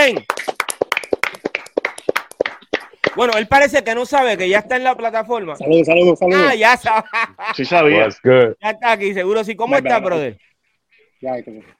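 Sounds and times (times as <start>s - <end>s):
speech: 0.0s - 0.3s, 3.2s - 10.5s, 11.2s - 11.7s
applause: 0.0s - 3.6s
laughter: 6.4s - 8.2s.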